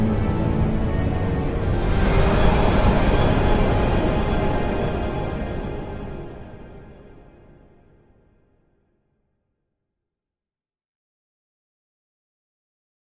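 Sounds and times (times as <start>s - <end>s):
eerie orchestral music: 0.0s - 7.8s.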